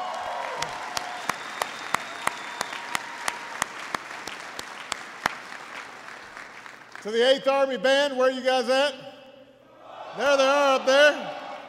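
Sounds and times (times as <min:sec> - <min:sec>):
audience applause at a military ceremony: 0:00.0 - 0:07.4
speech: 0:07.0 - 0:09.0, 0:10.2 - 0:11.4.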